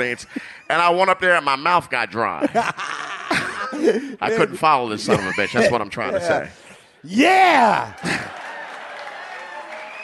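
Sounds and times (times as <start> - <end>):
speech: 0.0 - 3.0, 3.7 - 8.3
laughter: 2.4 - 6.6, 7.9 - 8.9
audience clapping: 7.8 - 10.0.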